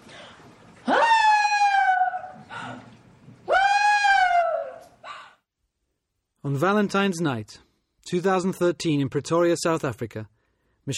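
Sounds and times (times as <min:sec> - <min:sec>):
witness imitating a woman's screaming cry: 0:00.9 - 0:02.4, 0:03.5 - 0:05.0
speech: 0:06.4 - 0:10.9.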